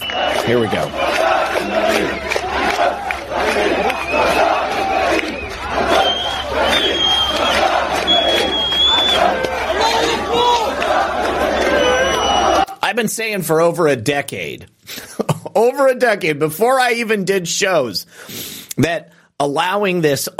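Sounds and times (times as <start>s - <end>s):
sharp high whistles: 0.0s - 1.1s, 5.3s - 9.3s, 11.6s - 12.6s
large crowd cheering and shouting: 0.0s - 12.8s
speech: 0.5s - 2.9s, 13.0s - 15.0s, 15.6s - 20.3s.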